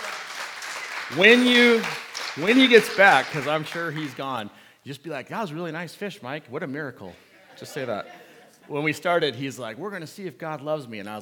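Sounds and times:
audience applause: 0.0s - 4.3s
speech: 1.1s - 11.2s
laughter: 7.4s - 8.8s.

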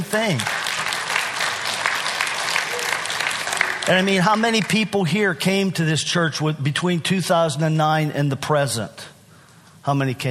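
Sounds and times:
audience applause: 0.0s - 4.6s
speech: 0.1s - 0.6s, 3.9s - 9.1s, 9.8s - 10.3s.

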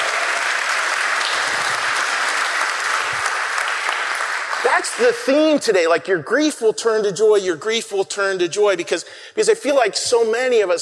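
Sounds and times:
audience applause: 0.0s - 5.4s
speech: 4.7s - 10.7s.

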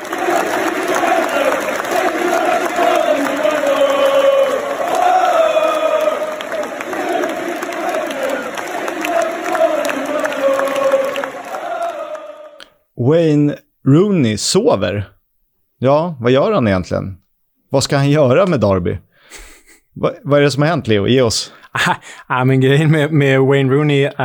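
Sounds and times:
football fans chanting a stadium tribute: 0.0s - 12.6s
speech: 13.1s - 15.2s, 15.8s - 19.4s, 20.0s - 24.2s
laughter: 21.7s - 22.2s.

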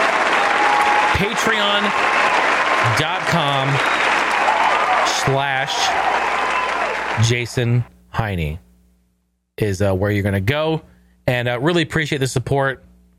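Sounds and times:
round of applause: 0.0s - 7.8s
speech: 1.2s - 4.0s, 5.2s - 6.4s, 7.2s - 8.6s, 9.6s - 12.9s.

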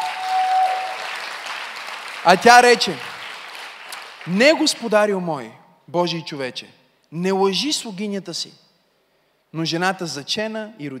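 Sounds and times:
audience applause: 0.0s - 4.3s
speech: 2.2s - 3.1s, 4.2s - 8.6s, 9.5s - 10.9s.

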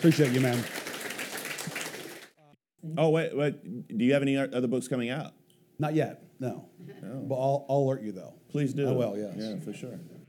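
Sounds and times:
speech: 0.0s - 0.8s, 2.8s - 10.2s
audience applause: 0.0s - 2.4s.

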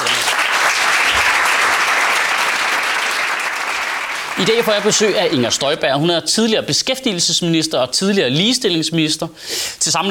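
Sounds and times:
audience applause: 0.0s - 5.8s
speech: 4.4s - 10.0s.

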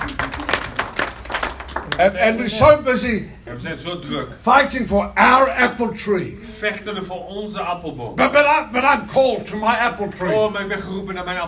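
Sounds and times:
audience applause: 0.0s - 2.1s
speech: 2.0s - 11.4s.

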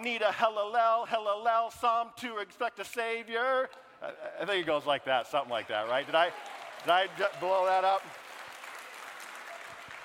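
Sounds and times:
speech: 0.0s - 8.2s
sparse pity applause from audience: 5.6s - 10.0s.

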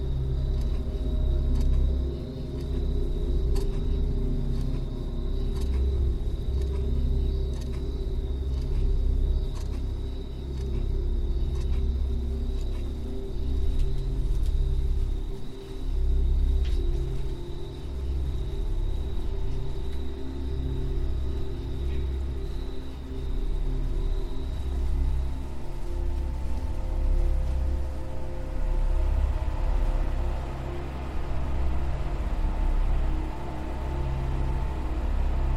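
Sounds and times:
hyperspace sleep chamber low drone: 0.0s - 35.5s
faint clock ticks: 0.2s - 20.2s.

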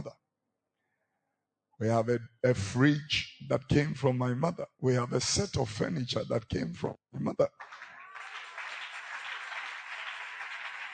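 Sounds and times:
speech: 1.8s - 7.8s
crowd applauding: 7.5s - 10.9s.

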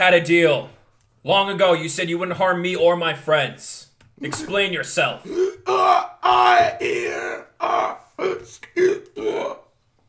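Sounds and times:
speech: 0.0s - 9.6s
crystalline creature groans and squeaky croaks: 5.2s - 9.7s.

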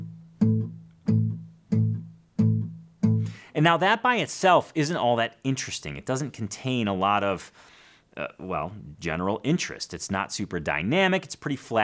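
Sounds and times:
muted steady bass on acoustic guitar in 12-bar blues style: 0.0s - 3.5s
speech: 3.6s - 11.8s.

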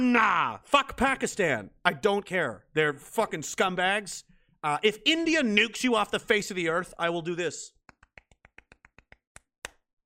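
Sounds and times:
speech: 0.0s - 7.8s
hands clapping: 7.8s - 9.8s.

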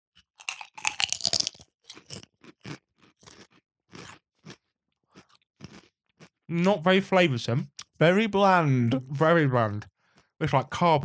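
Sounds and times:
crunching sea salt lentil chips: 0.3s - 6.3s
speech: 6.5s - 11.0s.

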